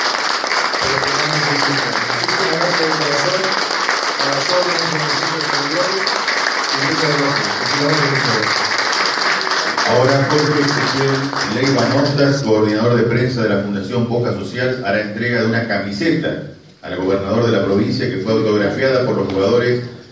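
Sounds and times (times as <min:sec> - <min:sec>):
sustained audience applause: 0:00.0 - 0:12.4
speech: 0:06.8 - 0:08.6, 0:09.9 - 0:20.0.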